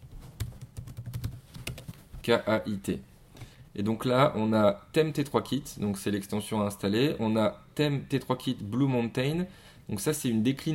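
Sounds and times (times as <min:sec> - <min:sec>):
typing on a computer keyboard into a software search field: 0:00.4 - 0:01.9
speech: 0:02.3 - 0:03.1, 0:03.8 - 0:10.7.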